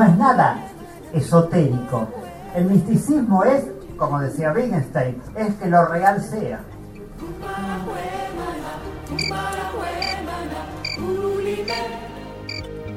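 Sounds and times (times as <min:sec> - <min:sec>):
speech: 0:00.2 - 0:06.7
cricket chirps: 0:09.2 - 0:09.4, 0:10.0 - 0:10.2, 0:10.8 - 0:11.0.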